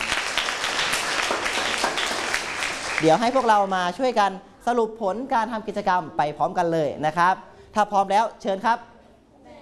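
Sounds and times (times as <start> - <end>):
audience applause for classmates: 0.0 - 3.6
speech: 3.0 - 8.9.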